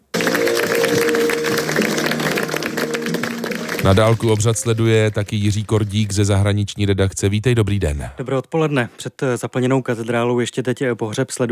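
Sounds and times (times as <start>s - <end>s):
crowd applause outside St Patrick's Cathedral funeral: 0.0s - 6.6s
speech: 3.8s - 11.4s.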